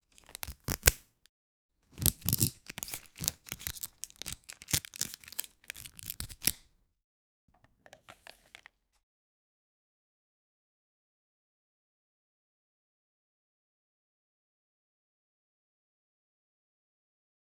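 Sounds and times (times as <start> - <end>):
card packet opening: 0.1 - 1.0, 2.0 - 6.7, 7.9 - 8.7.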